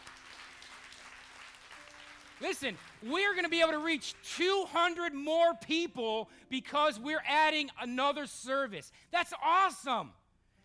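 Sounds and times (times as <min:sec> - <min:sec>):
audience applause: 0:00.0 - 0:03.1
speech: 0:02.4 - 0:10.2.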